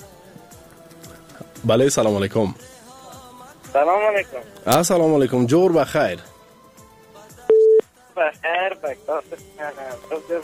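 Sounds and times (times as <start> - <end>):
speech: 1.6 - 2.7, 3.7 - 6.3, 8.2 - 10.4
voice talking over the telephone line: 3.7 - 4.6, 8.2 - 10.4
studio telephone tone: 7.5 - 7.8.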